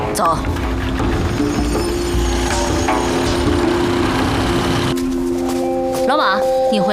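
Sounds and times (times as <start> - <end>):
speech: 0.2 - 0.5, 6.1 - 6.9
truck engine arriving: 0.5 - 5.3.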